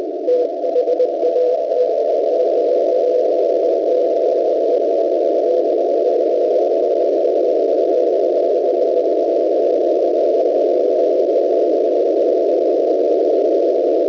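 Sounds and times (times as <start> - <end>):
9100 kHz CW radio signal: 0.0 - 14.0.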